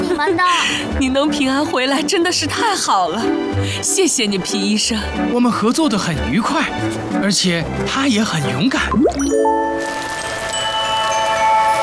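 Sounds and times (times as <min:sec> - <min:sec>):
speech: 0:00.2 - 0:10.1
steady rain: 0:09.7 - 0:11.8.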